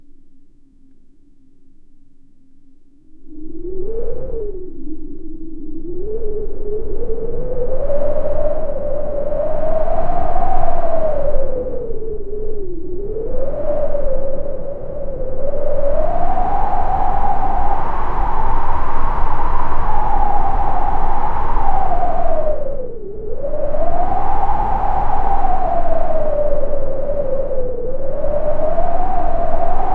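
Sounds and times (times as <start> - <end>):
steady wind: 3.1 - 29.9.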